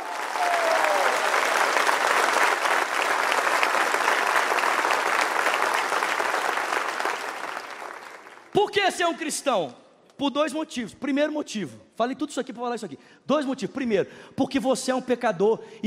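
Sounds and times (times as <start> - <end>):
audience applause: 0.0 - 8.6
speech: 8.6 - 15.8.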